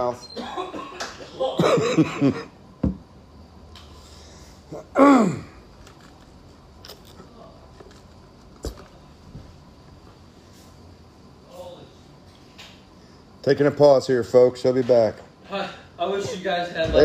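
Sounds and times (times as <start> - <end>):
speech: 0.0 - 0.8, 1.4 - 2.6, 5.0 - 5.5, 13.5 - 17.0
man dry heaving after smelling a bottle: 4.7 - 5.6.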